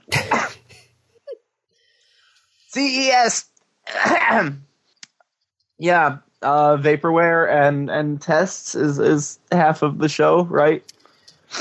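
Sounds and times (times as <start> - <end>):
person coughing after choking on tea: 0.1 - 0.8, 3.9 - 4.6
speech: 2.8 - 4.7, 5.8 - 11.6.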